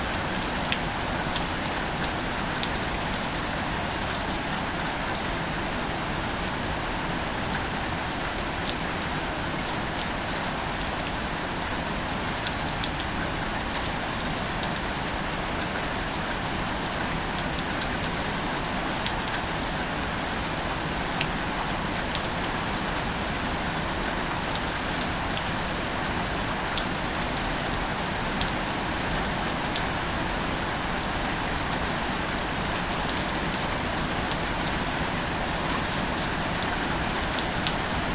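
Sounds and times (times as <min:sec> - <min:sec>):
rain on a building: 0:00.0 - 0:38.1.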